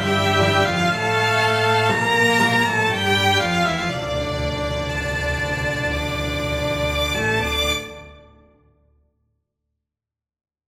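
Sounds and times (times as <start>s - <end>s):
string orchestra playing a dance: 0.0s - 8.4s.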